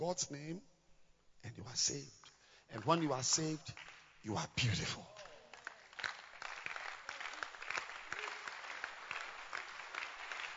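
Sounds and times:
speech: 0.0 - 0.7, 1.4 - 5.1
audience applause: 5.2 - 10.5.

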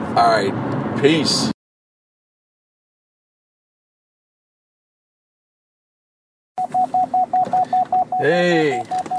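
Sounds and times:
speech: 0.2 - 1.6, 8.2 - 9.1
beeping: 6.6 - 9.1.

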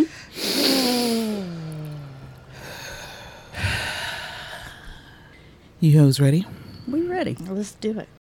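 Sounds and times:
person taking a deep breath and voiced sigh: 0.0 - 5.6
speech: 5.8 - 8.2.

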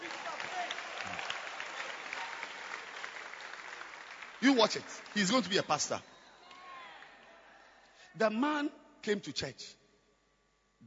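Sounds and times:
audience clapping hands: 0.0 - 7.2
speech: 4.4 - 6.1, 8.2 - 9.8.

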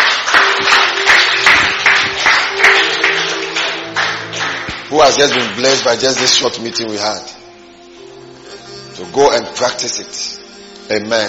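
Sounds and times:
audience clapping: 0.0 - 6.8
speech: 5.0 - 7.4, 9.0 - 11.2.

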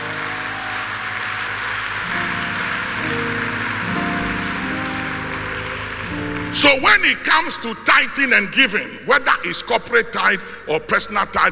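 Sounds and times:
audience clapping: 0.0 - 8.3
speech: 6.5 - 11.5.

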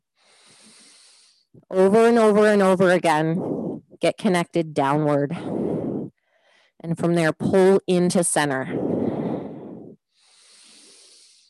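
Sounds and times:
ujjayi yoga breathing through a constricted throat: 0.0 - 1.6, 5.4 - 6.8, 8.7 - 11.4
speech: 1.6 - 5.6, 6.8 - 8.8.

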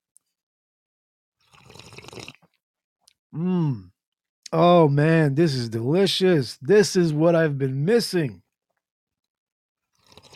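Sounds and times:
sipping coffee from a mug: 1.4 - 2.6
speech: 4.5 - 8.4.

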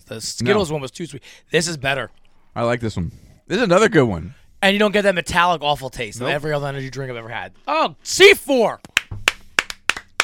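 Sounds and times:
speech: 0.1 - 8.9
hand clapping: 8.8 - 10.2.

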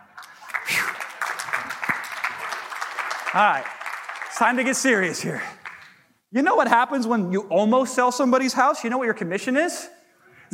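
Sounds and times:
audience clapping: 0.0 - 6.2
speech: 3.3 - 5.6, 6.3 - 10.5.

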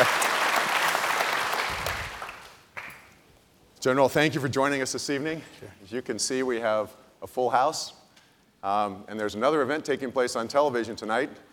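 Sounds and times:
audience applause: 0.0 - 3.0
speech: 3.8 - 8.0, 8.6 - 11.5.

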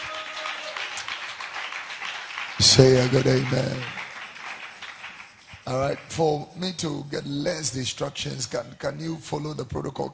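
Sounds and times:
church congregation clapping after a prayer during a worship service: 0.0 - 7.4
speech: 2.6 - 4.0, 5.7 - 10.1.

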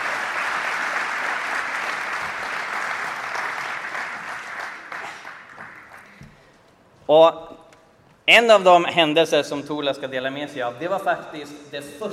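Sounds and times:
audience applause: 0.0 - 6.3
speech: 7.1 - 7.6, 8.3 - 12.1.

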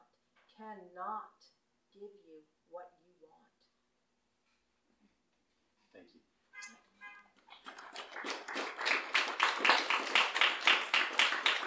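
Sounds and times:
speech: 0.6 - 3.5, 6.0 - 6.3
audience clapping: 7.4 - 11.6.

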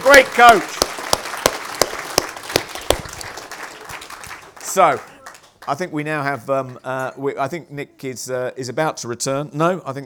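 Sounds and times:
audience applause: 0.0 - 5.6
speech: 0.1 - 0.9, 4.8 - 10.0.

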